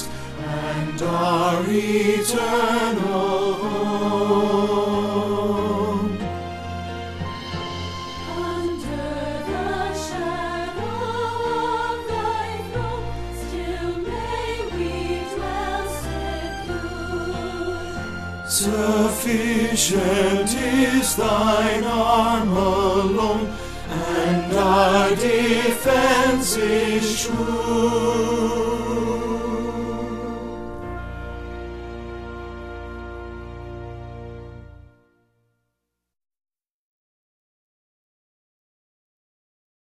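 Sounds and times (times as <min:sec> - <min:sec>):
bass choir part singing a hymn: 0:00.0 - 0:06.4, 0:08.3 - 0:31.2.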